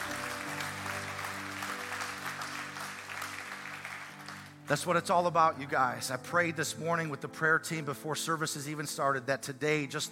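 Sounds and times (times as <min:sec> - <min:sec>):
church congregation applauding to welcome newly baptized believers: 0:00.0 - 0:05.3
speech: 0:04.7 - 0:10.1.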